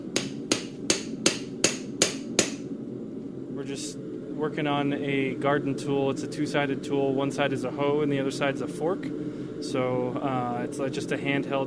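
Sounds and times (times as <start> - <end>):
low steady rumble: 0.0 - 11.6
hammer pounding hot steel on anvil: 0.2 - 2.6
speech: 3.7 - 11.6.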